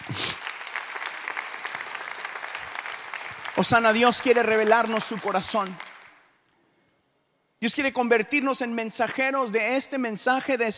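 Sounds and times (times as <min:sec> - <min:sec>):
audience applause: 0:00.0 - 0:06.1
speech: 0:03.6 - 0:05.9, 0:07.6 - 0:10.7.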